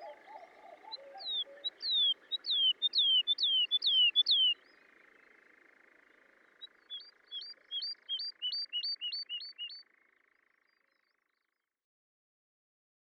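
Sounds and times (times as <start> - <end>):
woodlark singing: 0.0 - 4.6, 6.6 - 9.8.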